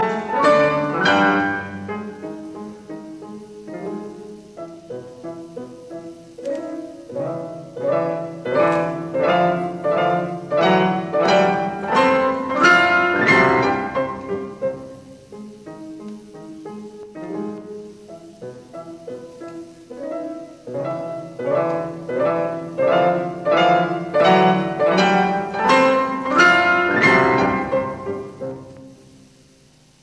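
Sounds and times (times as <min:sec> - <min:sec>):
classical variations in C major on a waltz: 0:00.0 - 0:30.0.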